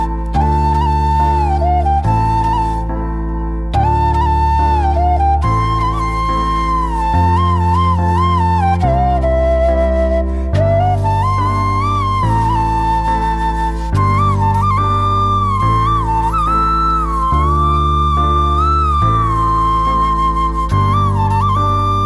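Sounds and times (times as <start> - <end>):
flute ringtone: 0.0 - 2.9, 3.7 - 22.0.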